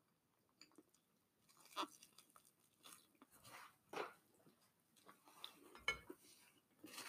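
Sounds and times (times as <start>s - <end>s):
chewing food with sun-dried tomatoes: 0.4s - 5.8s.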